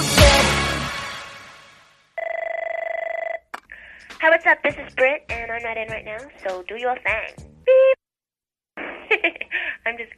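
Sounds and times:
telephone ringing: 2.2 - 3.5
speech: 4.4 - 7.9, 9.2 - 10.1.

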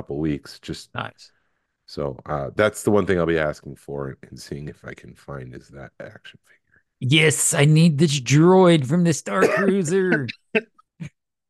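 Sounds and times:
speech: 0.0 - 11.2
person coughing: 9.3 - 10.7.

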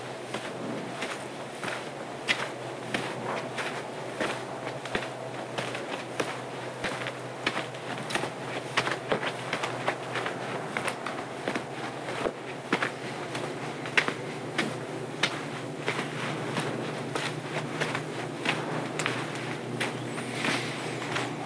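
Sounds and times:
footsteps crunching on a trail during a night hike: 0.0 - 21.4
low hum: 13.0 - 21.4.

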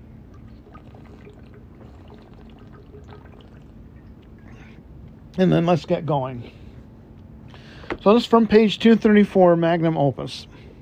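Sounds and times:
water trickling as someone takes a little drink: 0.2 - 4.4
speech: 5.4 - 6.6, 8.0 - 10.5.

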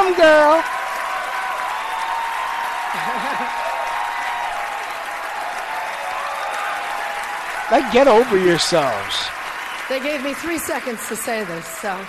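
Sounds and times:
audience clapping: 0.0 - 12.0
laughter: 2.8 - 4.1, 7.7 - 9.3
speech: 7.7 - 12.0.

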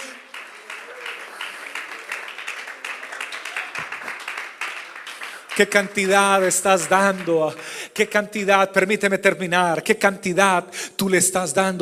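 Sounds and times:
audience applause: 0.0 - 7.7
speech: 5.6 - 11.8.

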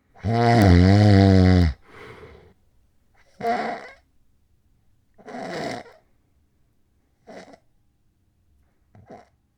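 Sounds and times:
loud rattling snore with sleep apnea: 0.2 - 2.4.

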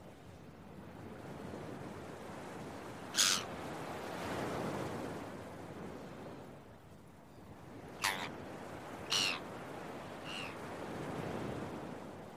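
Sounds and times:
early morning beach waves: 0.9 - 6.5, 7.6 - 12.3
seagulls crying: 3.2 - 3.5, 8.0 - 8.3, 9.0 - 9.5, 10.2 - 10.6.

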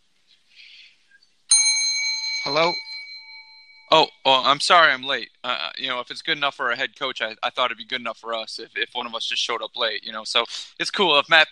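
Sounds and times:
Grifka Bell ringing: 1.5 - 4.2
speech: 2.5 - 2.8, 3.9 - 11.5.

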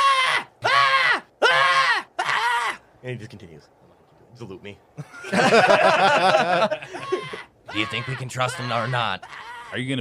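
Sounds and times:
voice imitating a screaming skull: 0.0 - 2.8, 6.9 - 9.8
speech: 3.0 - 9.9
laughter: 5.0 - 7.9.

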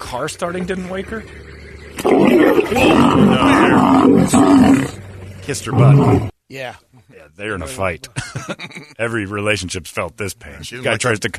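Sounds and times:
speech: 0.1 - 11.3
lion roaring: 1.2 - 6.3
laughter: 8.0 - 9.0.

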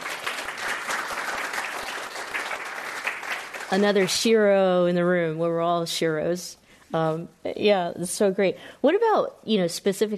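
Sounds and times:
audience round of applause for a panel guest: 0.0 - 4.3
speech: 3.7 - 10.1.

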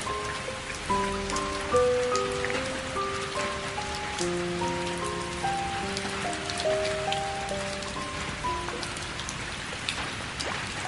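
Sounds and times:
gentle melodic tune: 0.0 - 10.3
steady rain pouring: 0.0 - 10.8.

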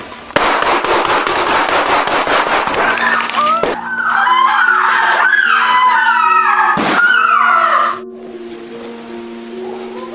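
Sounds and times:
gunfire as police officers go up the stairs in a house: 0.4 - 3.0
people shouting: 2.7 - 8.0.

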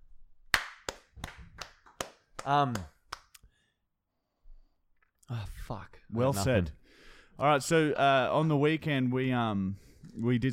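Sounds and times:
person clapping hands: 0.5 - 3.4
speech: 2.4 - 3.0, 5.3 - 6.8, 7.4 - 10.5.

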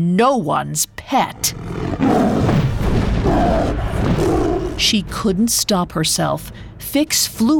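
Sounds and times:
speech: 0.0 - 2.2, 3.2 - 7.5
deep roar of a mythical beast: 1.3 - 5.0.

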